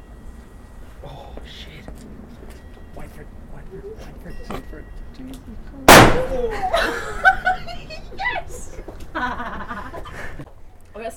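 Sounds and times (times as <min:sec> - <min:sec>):
speech: 0:03.1 - 0:10.4
mid-size Corsair firework rocket bang: 0:05.9 - 0:06.5
laughter: 0:06.2 - 0:10.5.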